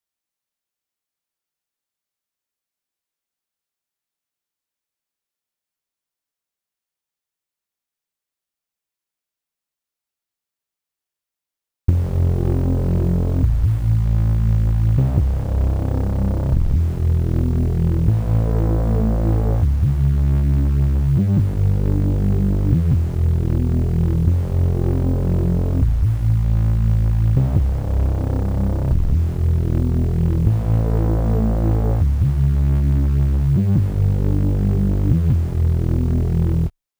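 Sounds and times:
bass: 11.9s - 36.7s.

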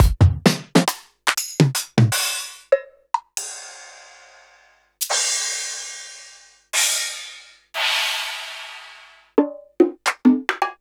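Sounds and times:
drum: 0.0s - 2.6s, 5.0s - 10.7s.

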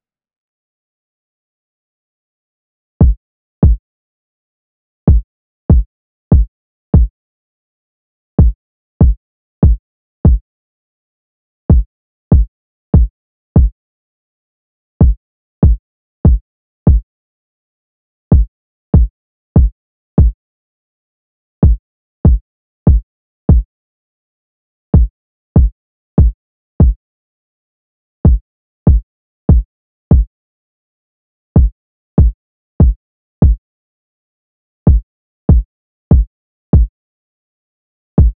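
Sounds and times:
kick drum: 3.0s - 3.8s, 5.1s - 7.1s, 8.4s - 10.4s, 11.7s - 13.7s, 15.0s - 17.0s, 18.3s - 20.4s, 21.6s - 23.7s, 25.0s - 27.0s, 28.2s - 30.3s, 31.6s - 33.6s, 34.9s - 36.9s, 38.2s - 38.3s.

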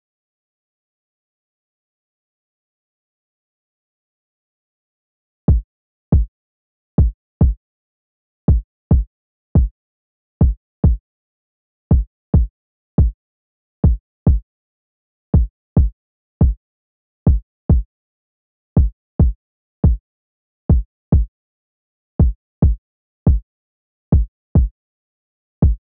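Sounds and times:
kick drum: 5.5s - 6.3s, 7.0s - 7.6s, 8.5s - 9.7s, 10.4s - 11.0s, 11.9s - 13.2s, 13.9s - 14.4s, 15.4s - 16.6s, 17.3s - 17.9s, 18.8s - 20.0s, 20.7s - 21.3s, 22.2s - 23.4s, 24.1s - 24.7s, 25.6s - 25.8s.

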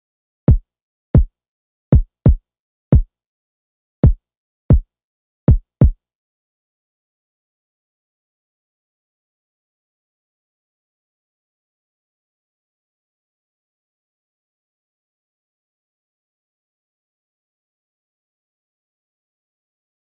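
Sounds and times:
kick drum: 1.9s - 3.1s, 4.0s - 4.9s, 5.5s - 6.0s.

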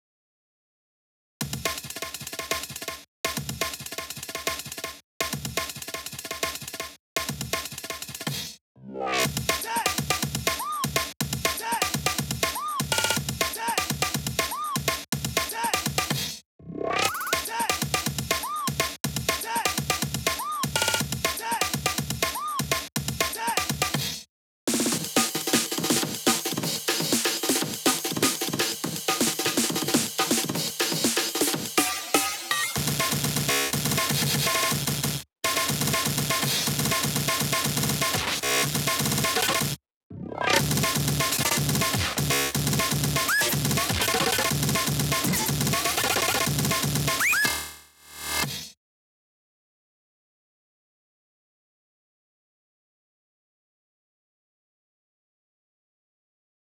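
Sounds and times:
drums: 1.4s - 8.6s, 9.2s - 16.4s, 17.1s - 39.8s, 40.4s - 47.6s.

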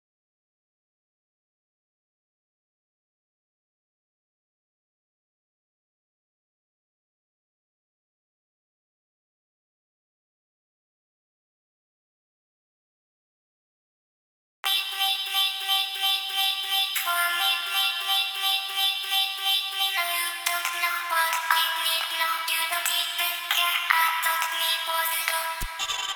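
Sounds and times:
extra vocals: 14.6s - 26.1s.

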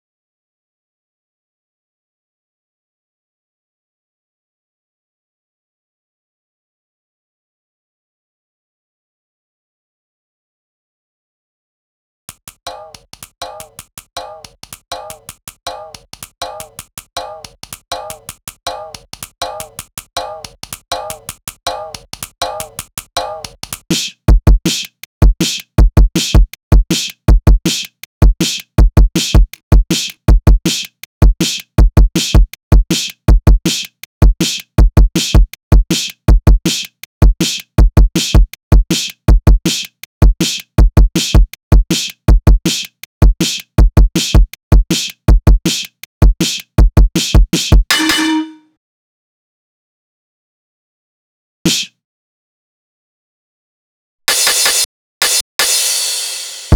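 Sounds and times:
drums: 12.3s - 48.6s, 51.7s - 52.0s, 54.3s - 56.7s.

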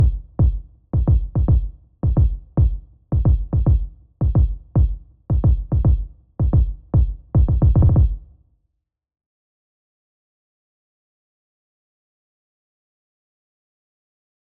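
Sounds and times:
kick drum: 0.0s - 8.3s.

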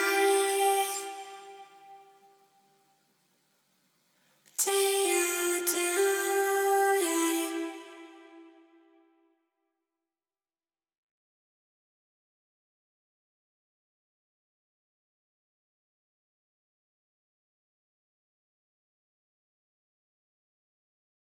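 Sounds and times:
person's voice: 0.0s - 1.5s, 4.6s - 8.2s.

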